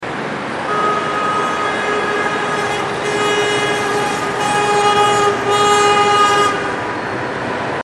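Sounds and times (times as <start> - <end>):
car passing: 0.0 - 7.8
car horn: 0.7 - 6.9.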